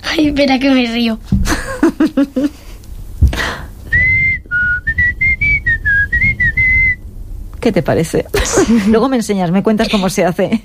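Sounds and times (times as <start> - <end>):
speech: 0.1 - 1.3, 2.0 - 2.6, 7.6 - 10.6
person whistling a string of clear notes: 3.9 - 7.0.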